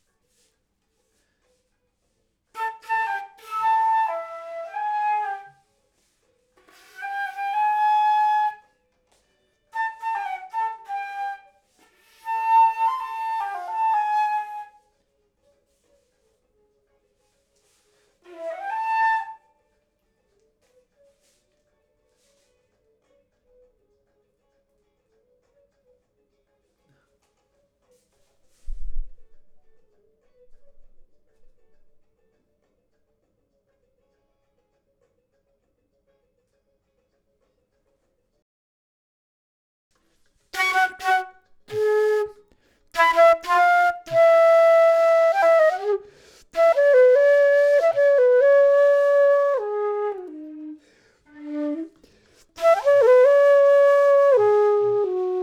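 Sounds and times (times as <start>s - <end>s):
flute: 2.5s - 16.7s, 17.6s - 23.9s, 28.5s - 32.1s, 40.5s - 55.4s.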